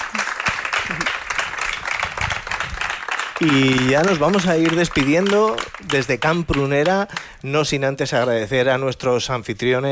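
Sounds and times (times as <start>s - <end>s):
audience applause: 0.0s - 7.3s
speech: 3.4s - 9.9s.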